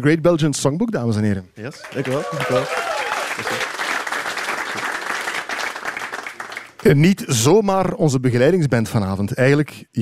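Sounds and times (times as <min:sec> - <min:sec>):
speech: 0:00.0 - 0:03.6, 0:06.8 - 0:09.9
crowd applause: 0:01.7 - 0:06.8.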